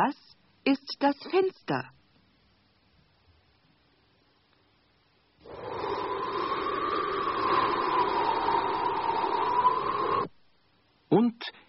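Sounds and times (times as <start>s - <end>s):
speech: 0.0s - 2.0s, 11.1s - 11.6s
wind blowing: 5.4s - 10.3s.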